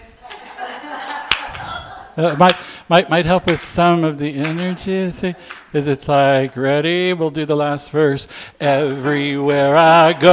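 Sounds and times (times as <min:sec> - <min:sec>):
laughter: 0:00.2 - 0:02.6, 0:04.4 - 0:05.7
hand claps: 0:01.3 - 0:02.7, 0:03.4 - 0:05.7, 0:08.8 - 0:10.3
crowd murmur at a gospel-style sing-along: 0:01.4 - 0:02.2
speech: 0:02.2 - 0:10.3.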